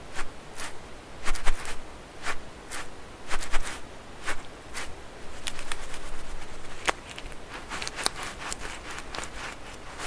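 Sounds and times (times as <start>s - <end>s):
faint steady low hiss: 0.0s - 10.0s
squishy stress balls being squeezed: 6.6s - 10.0s.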